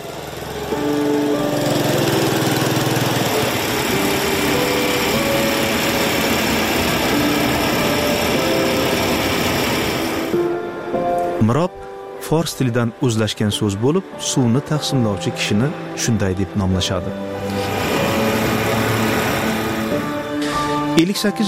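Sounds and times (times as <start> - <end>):
village water distributor's motorcycle engine in Samarqandlik village, Batken: 0.0 - 10.6, 17.2 - 20.9
speech: 12.3 - 17.7, 21.0 - 21.4.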